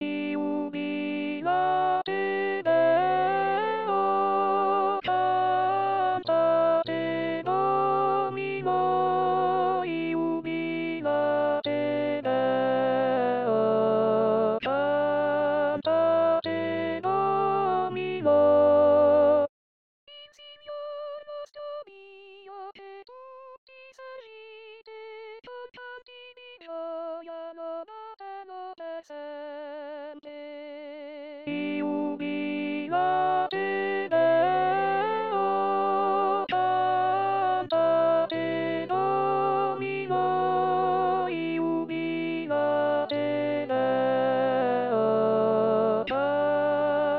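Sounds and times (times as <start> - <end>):
contralto voices singing: 0.0 - 19.5, 31.5 - 47.1.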